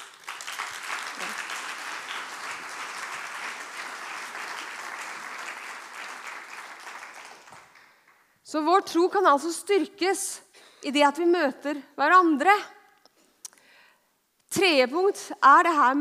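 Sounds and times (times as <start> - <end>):
audience applause: 0.0 - 8.3
speech: 8.5 - 12.8, 14.6 - 15.9.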